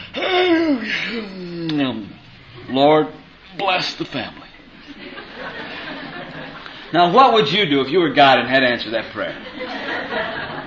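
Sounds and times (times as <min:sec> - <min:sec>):
person imitating a big yawn with the voice: 0:00.0 - 0:02.0
speech: 0:00.9 - 0:02.1, 0:02.8 - 0:04.4, 0:06.9 - 0:09.8
laughter: 0:04.8 - 0:07.0, 0:09.2 - 0:10.6.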